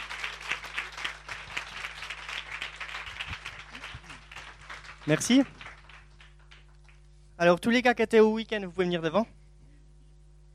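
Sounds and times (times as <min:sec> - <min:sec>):
audience applause: 0:00.0 - 0:07.0
low steady hum: 0:00.0 - 0:10.5
speech: 0:05.0 - 0:05.6, 0:07.4 - 0:09.4.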